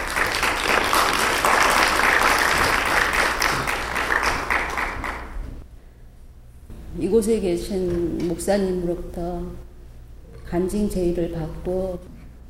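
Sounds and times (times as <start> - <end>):
audience applause welcoming a speaker: 0.0 - 5.4
speech: 7.1 - 9.7, 10.5 - 12.2.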